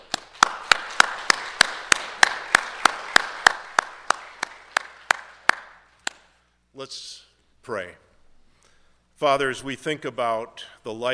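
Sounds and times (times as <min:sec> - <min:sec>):
applause: 0:00.0 - 0:06.2
speech: 0:06.8 - 0:08.0, 0:09.2 - 0:11.1.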